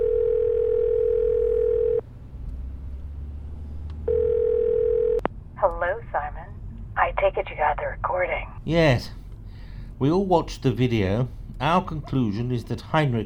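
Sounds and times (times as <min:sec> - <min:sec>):
telephone ringback tone: 0:00.0 - 0:02.0, 0:04.1 - 0:05.2
speech: 0:07.2 - 0:09.2, 0:10.0 - 0:13.2.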